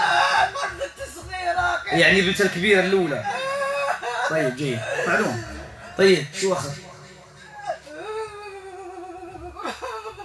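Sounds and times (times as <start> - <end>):
woman crying and whimpering: 0.0 - 1.1, 3.2 - 6.0, 7.2 - 10.2
speech: 1.9 - 3.4, 4.3 - 6.9.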